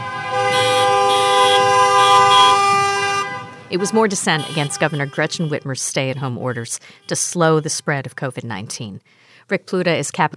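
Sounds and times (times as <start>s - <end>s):
car horns beeping: 0.0s - 8.2s
speech: 3.7s - 10.3s.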